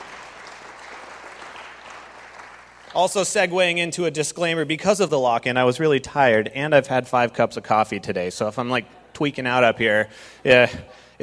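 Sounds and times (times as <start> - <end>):
church congregation applauding its leaders: 0.0 - 3.4
speech: 2.9 - 11.2.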